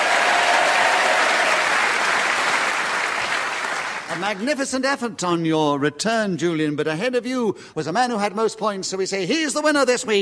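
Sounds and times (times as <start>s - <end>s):
audience applause: 0.0s - 4.4s
speech: 4.2s - 10.2s.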